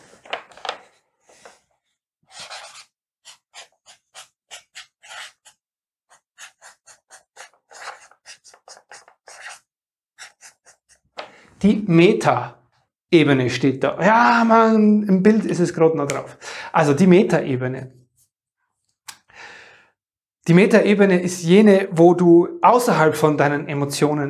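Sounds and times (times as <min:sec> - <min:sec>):
pen strokes writing over a picture: 0:02.3 - 0:11.3
speech: 0:11.6 - 0:18.0, 0:20.5 - 0:24.2.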